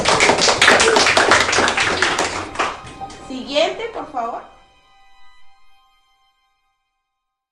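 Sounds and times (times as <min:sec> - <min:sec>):
classroom applause: 0:00.0 - 0:03.3
speech: 0:03.8 - 0:04.6.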